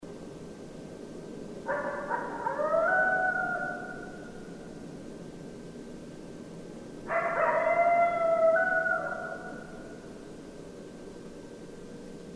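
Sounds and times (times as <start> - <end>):
several coyotes in a group howl: 1.7 - 4.3, 7.1 - 10.0.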